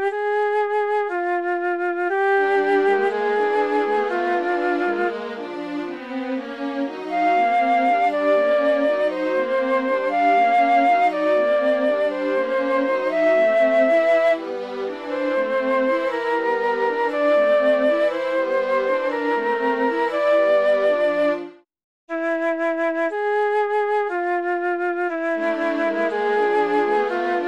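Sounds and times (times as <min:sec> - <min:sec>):
violin in a small piece: 0:00.0 - 0:21.7, 0:24.1 - 0:27.4
flute in a small piece: 0:00.0 - 0:27.4.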